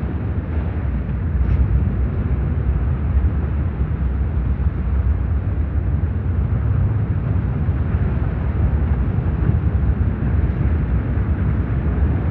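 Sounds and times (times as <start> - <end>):
brown noise rumble: 0.0 - 12.2.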